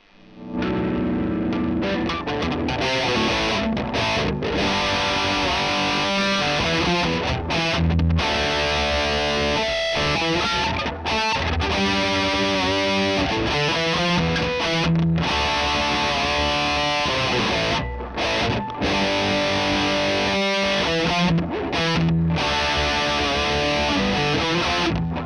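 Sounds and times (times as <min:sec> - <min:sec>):
electric guitar: 0:00.0 - 0:25.2.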